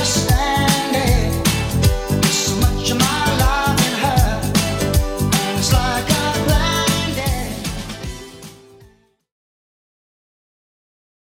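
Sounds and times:
1980s drum machine beat at 156 BPM: 0:00.0 - 0:08.8.

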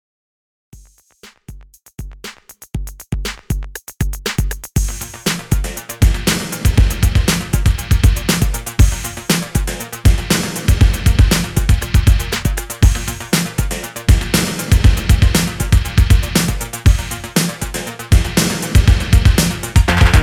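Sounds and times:
1980s style music at 119 BPM: 0:02.1 - 0:20.2.

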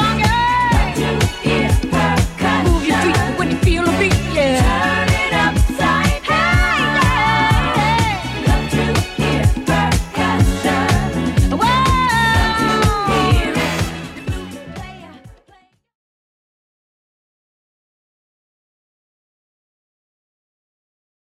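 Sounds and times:
70s music loop at 124 bpm: 0:00.0 - 0:15.2.

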